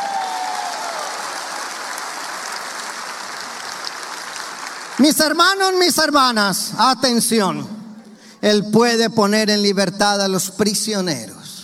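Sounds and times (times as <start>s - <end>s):
audience applause: 0.0s - 5.7s
speech: 5.0s - 7.8s, 8.4s - 11.4s.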